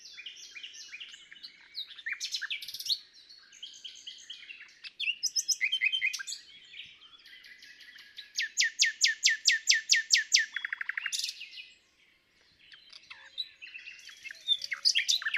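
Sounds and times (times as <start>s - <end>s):
common nightingale Luscinia megarhynchos singing rapid repeated notes: 0.0s - 15.3s.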